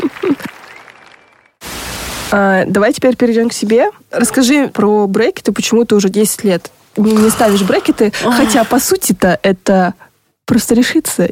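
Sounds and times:
applause: 0:00.0 - 0:01.6
speech: 0:02.3 - 0:11.3.

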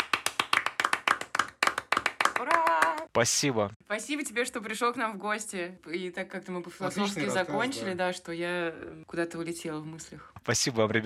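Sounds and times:
brisk hand clapping from a small group: 0:00.0 - 0:03.2
speech: 0:02.4 - 0:11.0.

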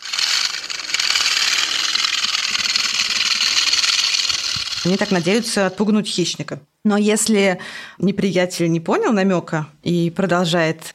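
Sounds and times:
porcupine rattling its raised quills: 0:00.0 - 0:05.7
speech: 0:04.8 - 0:10.9.

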